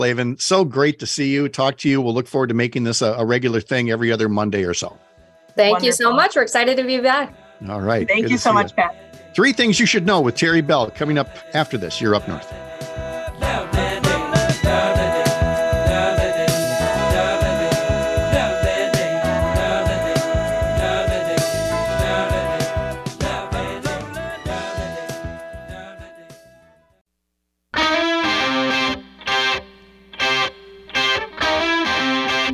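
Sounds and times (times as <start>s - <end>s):
speech: 0.0s - 13.6s
distorted rock song with driving guitars and drums: 12.3s - 26.0s, 27.8s - 32.5s.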